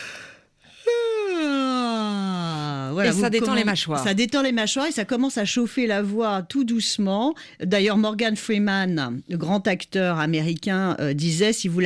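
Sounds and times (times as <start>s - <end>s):
person yawning as a vocal warm-up: 0.0s - 2.9s
speech: 3.0s - 11.8s.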